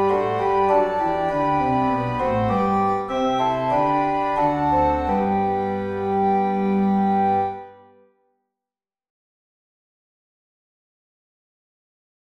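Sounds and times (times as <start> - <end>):
organ playing a national anthem hymn: 0.0 - 8.0.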